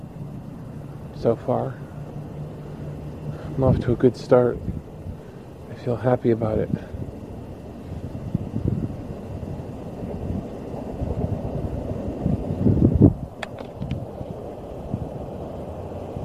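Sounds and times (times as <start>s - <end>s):
distant train: 0.0s - 16.2s
traffic rumble: 0.0s - 16.2s
speech: 1.2s - 1.9s, 3.6s - 4.7s, 5.8s - 7.0s
sharp clicks: 13.4s - 14.0s.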